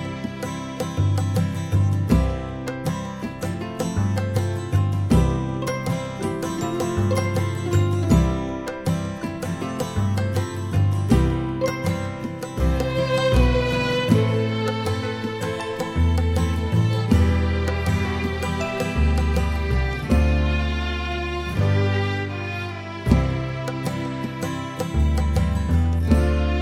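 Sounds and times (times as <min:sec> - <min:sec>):
instrumental music: 0:00.0 - 0:26.5.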